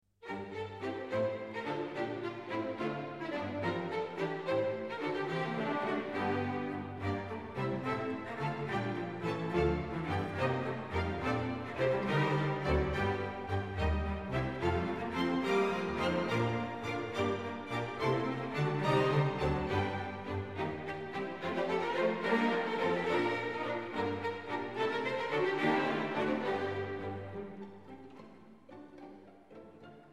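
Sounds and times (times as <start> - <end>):
string orchestra playing a tordion: 0.2 - 30.1.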